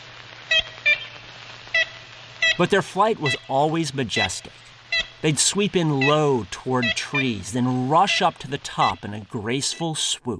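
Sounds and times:
ivory-billed woodpecker honking call: 0:00.5 - 0:01.2, 0:01.8 - 0:03.5, 0:04.8 - 0:05.3, 0:05.9 - 0:07.8
speech: 0:02.6 - 0:10.3.

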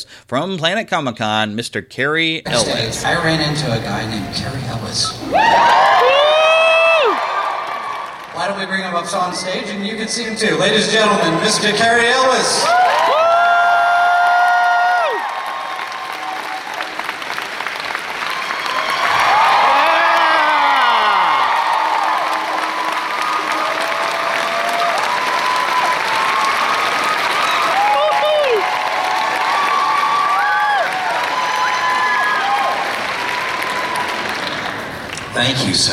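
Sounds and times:
speech: 0:00.0 - 0:06.2, 0:08.4 - 0:13.1, 0:35.6 - 0:35.9
whoops and shouted cheers: 0:05.2 - 0:08.2, 0:12.6 - 0:17.1, 0:18.2 - 0:34.6
large crowd clapping: 0:05.2 - 0:09.8, 0:12.6 - 0:35.9.

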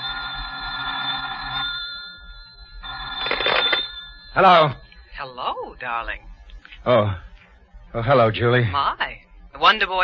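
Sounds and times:
telephone bell ringing: 0:00.0 - 0:05.6
speech: 0:04.4 - 0:07.2, 0:07.9 - 0:10.0.

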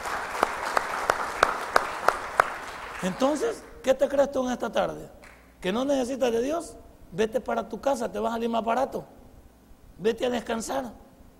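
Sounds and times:
audience applause: 0:00.0 - 0:03.7
speech: 0:03.0 - 0:09.2, 0:10.0 - 0:11.0.

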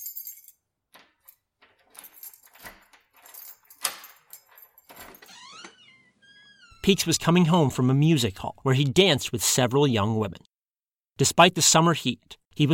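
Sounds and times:
keys rattling in a door lock of a dark apartment: 0:00.0 - 0:06.0
speech: 0:06.9 - 0:10.5, 0:11.2 - 0:12.7.

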